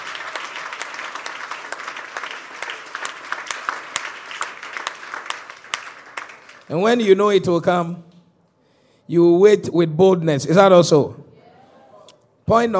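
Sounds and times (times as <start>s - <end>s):
audience applause: 0.0s - 7.2s
speech: 6.7s - 8.1s, 9.1s - 11.3s, 12.5s - 12.7s.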